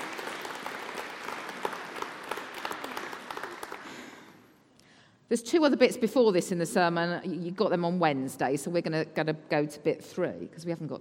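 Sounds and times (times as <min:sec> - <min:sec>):
round of applause: 0:00.0 - 0:04.5
speech: 0:05.3 - 0:10.9.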